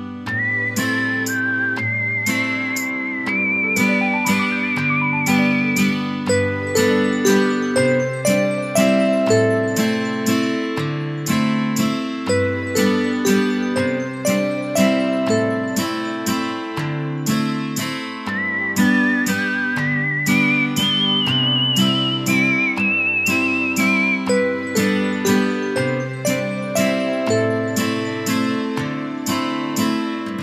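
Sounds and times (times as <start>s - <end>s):
ringtone: 0.3s - 30.3s.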